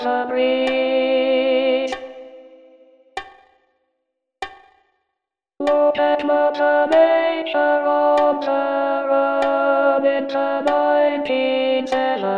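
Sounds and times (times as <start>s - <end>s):
alto singing a chorale: 0.0s - 2.0s, 5.6s - 12.3s.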